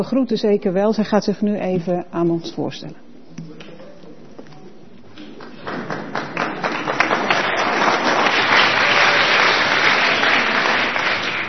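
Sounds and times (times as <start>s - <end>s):
speech: 0.0s - 3.0s
audience applause: 5.2s - 11.4s.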